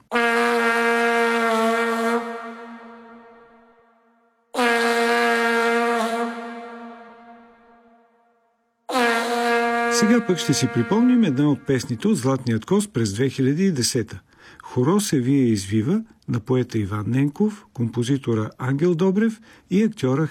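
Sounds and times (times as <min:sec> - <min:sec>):
vuvuzela being blown: 0:00.0 - 0:08.2, 0:08.9 - 0:12.3
speech: 0:10.0 - 0:20.2.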